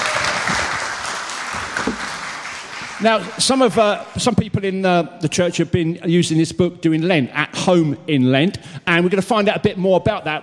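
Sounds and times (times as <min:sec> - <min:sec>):
crowd applauding: 0:00.0 - 0:04.3
speech: 0:03.0 - 0:10.4.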